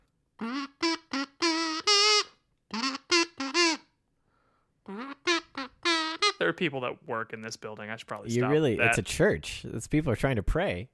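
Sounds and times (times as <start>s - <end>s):
kazoo buzzing notes: 0.3s - 4.0s, 4.8s - 6.5s
speech: 6.4s - 10.9s.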